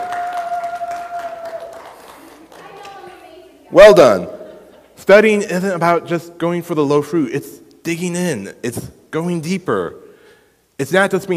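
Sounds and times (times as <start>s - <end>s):
audience applause during a talk: 0.0s - 3.4s
speech: 3.7s - 4.4s, 5.0s - 10.0s, 10.8s - 11.3s.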